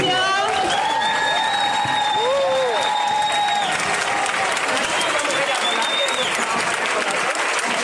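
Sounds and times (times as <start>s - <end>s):
audience applause: 0.0s - 7.8s.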